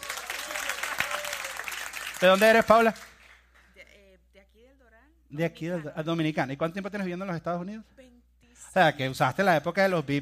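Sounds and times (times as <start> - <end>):
audience applause: 0.0 - 3.4
speech: 2.2 - 3.0, 5.3 - 8.1, 8.7 - 10.1.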